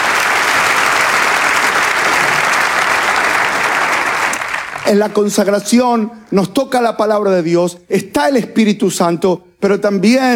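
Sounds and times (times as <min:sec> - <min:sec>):
applause: 0:00.0 - 0:05.2
speech: 0:04.9 - 0:10.3.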